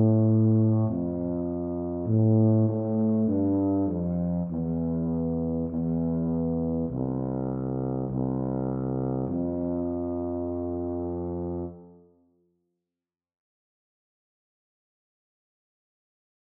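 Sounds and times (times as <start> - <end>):
tuba duet: 0.0 - 12.2.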